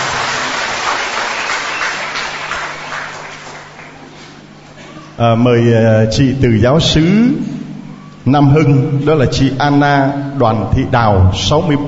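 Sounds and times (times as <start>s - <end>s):
audience applause: 0.0s - 4.1s
speech: 5.2s - 7.6s, 8.2s - 11.8s.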